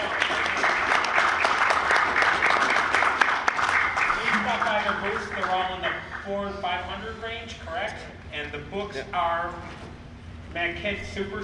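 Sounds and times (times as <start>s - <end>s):
audience applause: 0.0s - 6.2s
speech: 6.3s - 9.9s, 10.5s - 11.4s.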